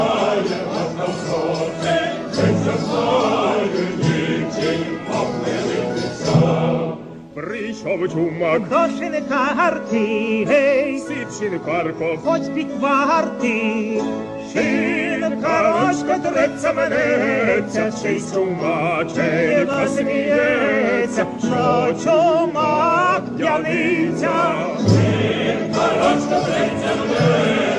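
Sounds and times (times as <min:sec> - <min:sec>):
Ukrainian tenor singing a Ukrainian traditional song: 0:00.0 - 0:27.7.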